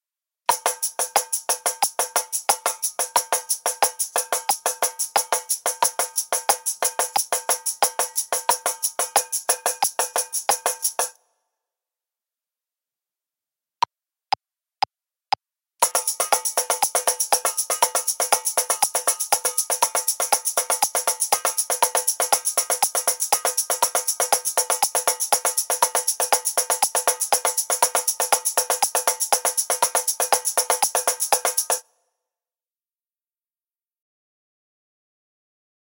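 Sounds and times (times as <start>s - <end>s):
shaker tambourine: 0.5s - 11.2s, 15.8s - 31.9s.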